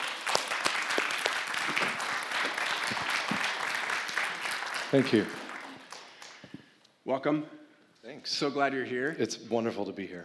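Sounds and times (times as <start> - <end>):
audience applauding to welcome a guest rabbi: 0.0 - 6.5
speech: 4.9 - 5.4, 7.1 - 10.2.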